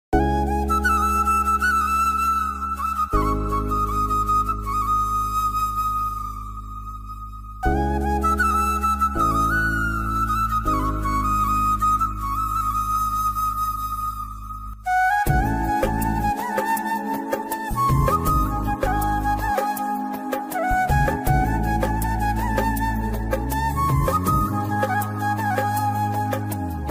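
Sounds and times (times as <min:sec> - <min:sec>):
flute tune: 0:00.2 - 0:26.8.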